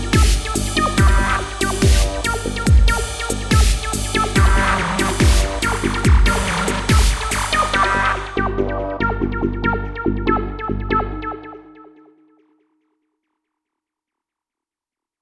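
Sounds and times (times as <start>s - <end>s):
industrial sound: 0.0s - 11.8s.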